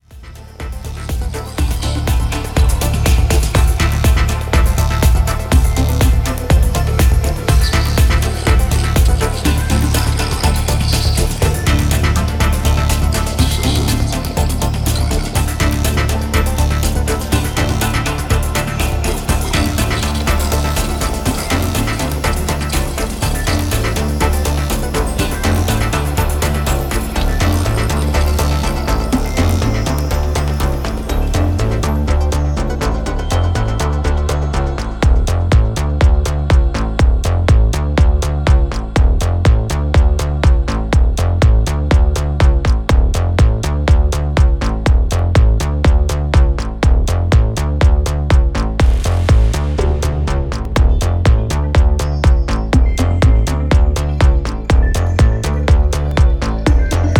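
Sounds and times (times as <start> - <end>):
cinematic dance music: 0.0 - 57.1.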